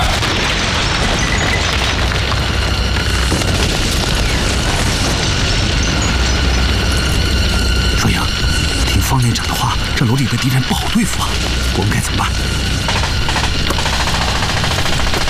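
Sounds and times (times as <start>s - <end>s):
heavy artillery fire: 0.0s - 7.7s, 12.8s - 15.2s
crackling debris: 0.0s - 15.2s
explosions: 0.0s - 15.2s
speech: 10.0s - 12.6s.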